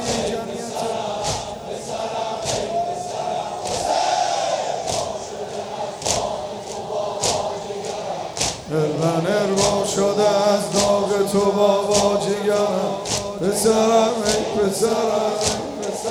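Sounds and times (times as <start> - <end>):
rhythmic loud thumps: 0.0 - 4.2, 4.8 - 16.0
crowd of mourners chanting: 0.0 - 16.0
speech: 9.0 - 16.0.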